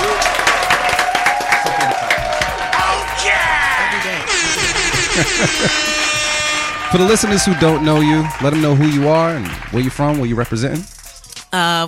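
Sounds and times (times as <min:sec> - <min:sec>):
studio audience applause: 0:00.0 - 0:10.4
laughter: 0:01.6 - 0:09.1
speech: 0:05.2 - 0:06.0, 0:06.9 - 0:10.9, 0:11.5 - 0:11.8.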